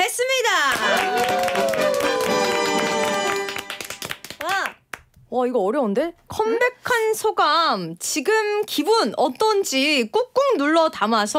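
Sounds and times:
audience clapping: 0:00.7 - 0:05.1
speech: 0:05.4 - 0:11.3.

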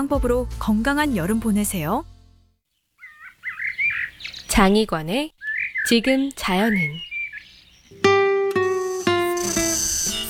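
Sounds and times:
speech: 0:00.0 - 0:02.1, 0:04.5 - 0:07.1
Meimuna mongolica cicada song: 0:03.0 - 0:04.5, 0:05.4 - 0:10.2.

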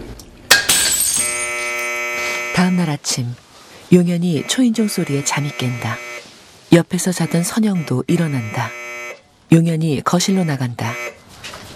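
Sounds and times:
tile falling from old wall and shattering: 0:00.5 - 0:01.9
speech: 0:02.6 - 0:06.0, 0:06.7 - 0:08.8, 0:09.5 - 0:11.2.

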